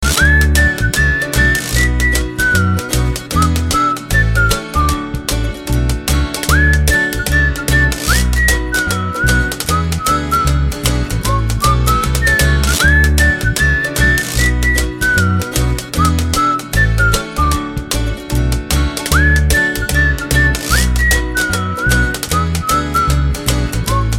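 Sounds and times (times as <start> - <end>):
whistling: 0.0 - 5.2, 6.5 - 17.8, 19.1 - 24.1
jazzy music: 0.0 - 24.1.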